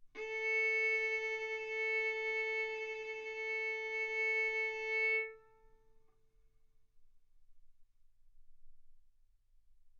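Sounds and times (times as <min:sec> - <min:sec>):
violin bowed arco notes: 0:00.1 - 0:05.8.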